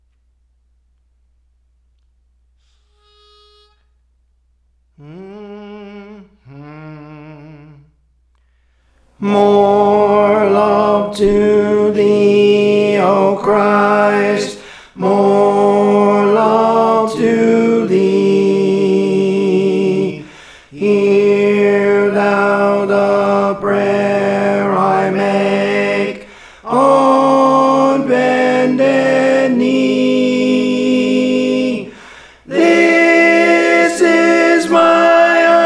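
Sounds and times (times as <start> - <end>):
tenor singing songs: 9.2 - 35.6.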